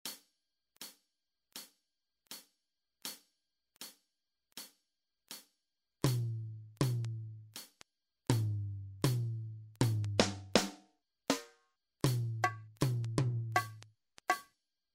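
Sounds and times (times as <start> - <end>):
rhythmic exercise: 3.1 - 14.5.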